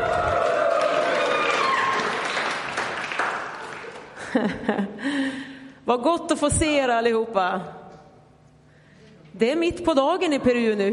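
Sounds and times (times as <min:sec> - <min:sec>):
shouts: 0:00.0 - 0:02.4
crowd cheering: 0:00.0 - 0:04.2
crowd clapping: 0:00.0 - 0:04.2
laughter: 0:03.8 - 0:05.0
speech: 0:04.4 - 0:05.2, 0:05.9 - 0:07.8, 0:09.4 - 0:10.9.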